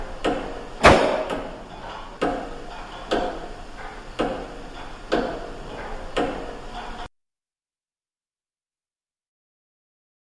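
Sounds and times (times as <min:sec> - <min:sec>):
ticks in a large reverberant room: 0:00.0 - 0:07.1.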